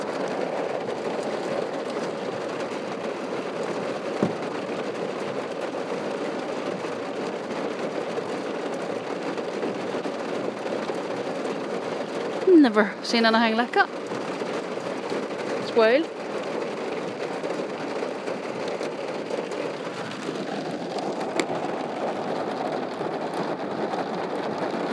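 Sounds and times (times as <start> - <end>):
heavy rain through open car window: 0.0 - 24.9
sharp tap: 4.2 - 4.4
speech: 12.6 - 14.0, 15.8 - 16.2.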